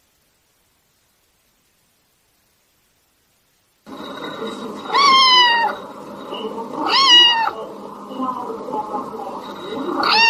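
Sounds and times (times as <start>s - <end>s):
cat meowing loudly: 4.9s - 5.8s, 6.8s - 7.6s, 10.0s - 10.2s.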